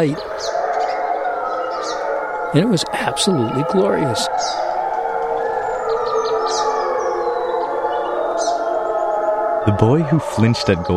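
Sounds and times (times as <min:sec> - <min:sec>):
speech: 0:00.0 - 0:00.6, 0:02.5 - 0:04.6, 0:09.7 - 0:10.9
bird chirps: 0:00.0 - 0:10.9
pack of wolves howling: 0:00.0 - 0:10.9.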